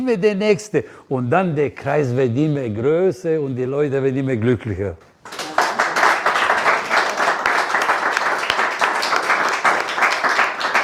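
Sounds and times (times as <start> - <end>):
speech: 0.0 - 5.4
audience applause: 5.2 - 10.8.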